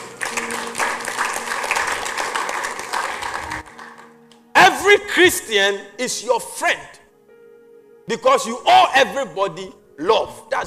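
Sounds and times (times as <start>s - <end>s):
audience clapping: 0.0s - 4.3s
speech: 5.2s - 7.0s, 8.1s - 10.6s.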